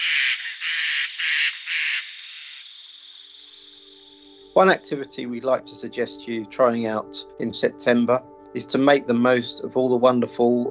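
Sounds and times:
harsh raucous shrieking bird call: 0.0s - 4.6s
speech: 4.6s - 10.6s.

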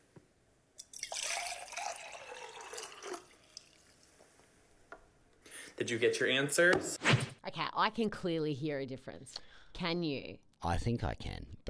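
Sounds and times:
water being poured into a vessel: 0.8s - 4.2s
speech: 5.8s - 7.1s, 7.8s - 11.6s.

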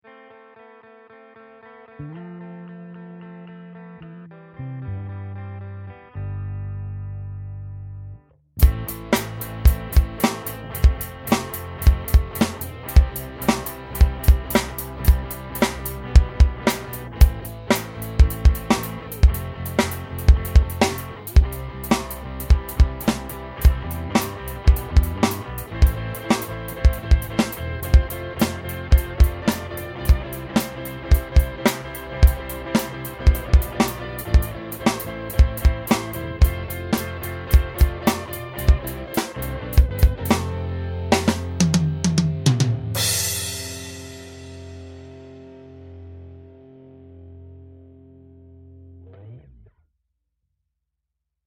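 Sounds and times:
four-four rock beat with fill: 8.6s - 45.5s.

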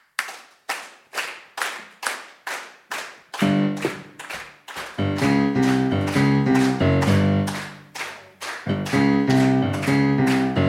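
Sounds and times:
people clapping hands: 0.0s - 10.6s.

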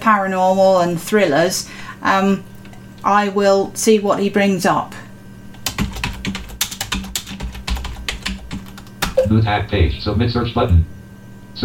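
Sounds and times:
speech: 0.1s - 5.0s, 9.3s - 10.9s
rapid computer-keyboard typing of an author's name into a search box: 5.5s - 9.3s.

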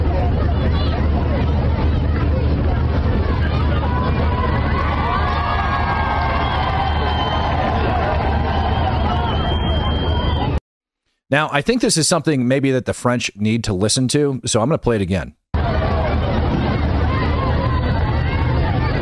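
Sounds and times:
people cheering: 0.0s - 10.6s, 15.6s - 19.0s
speech: 11.3s - 15.4s.

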